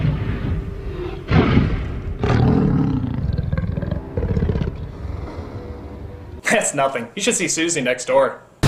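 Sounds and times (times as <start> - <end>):
T-Rex dinosaur roaring: 0.0 - 6.4
speech: 6.7 - 8.5.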